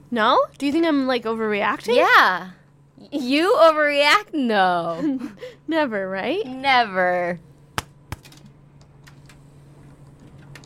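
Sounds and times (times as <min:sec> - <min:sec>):
speech: 0:00.1 - 0:07.5
slapping one's own face: 0:07.8 - 0:08.3.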